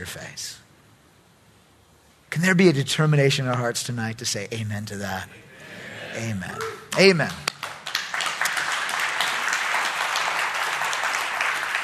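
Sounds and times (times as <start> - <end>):
speech: 0.0 - 0.6, 2.3 - 5.4, 6.1 - 7.5
audience applause: 6.2 - 11.8.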